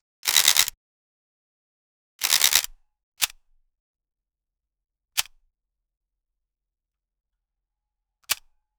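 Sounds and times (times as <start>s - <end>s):
professional photography camera shutter: 0.3s - 0.7s, 2.2s - 2.7s.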